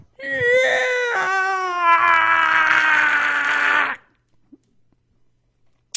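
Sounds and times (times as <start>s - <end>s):
person imitating a creature's loud shriek: 0.2s - 4.1s.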